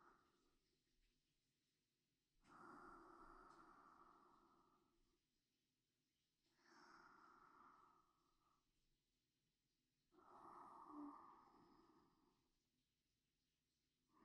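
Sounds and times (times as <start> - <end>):
sleep breathing: 2.4 - 5.1, 6.4 - 8.7, 10.1 - 12.5.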